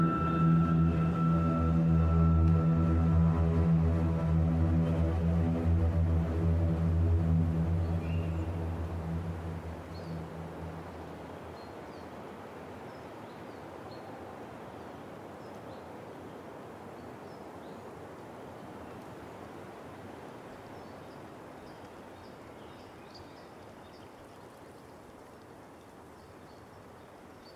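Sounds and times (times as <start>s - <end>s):
string music: 0.0s - 11.9s
quiet wind: 0.0s - 27.5s.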